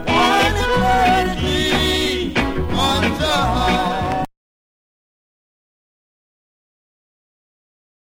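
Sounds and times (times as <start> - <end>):
reggae music: 0.0 - 4.3.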